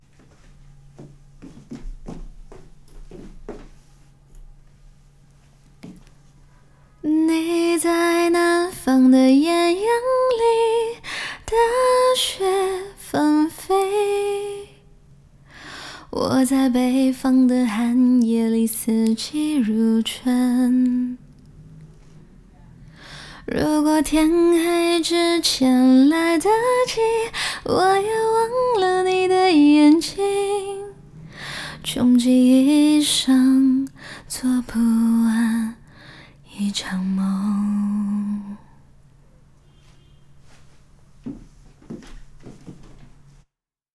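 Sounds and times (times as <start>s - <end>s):
person singing a cappella: 7.0s - 14.9s, 16.0s - 21.2s, 23.4s - 31.0s, 31.7s - 38.8s.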